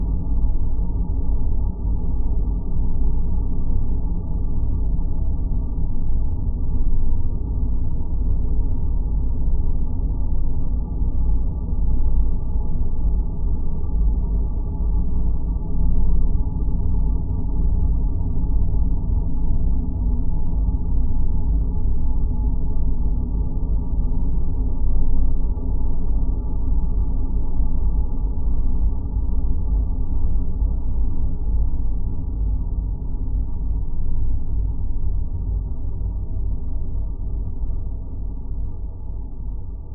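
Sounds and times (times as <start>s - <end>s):
dark desolate airy sound design drone: 0.0s - 39.9s.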